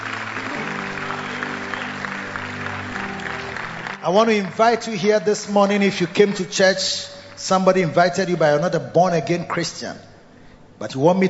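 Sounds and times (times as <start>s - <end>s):
audience clapping hands: 0.0s - 8.7s
speech: 4.0s - 10.1s, 10.8s - 11.2s.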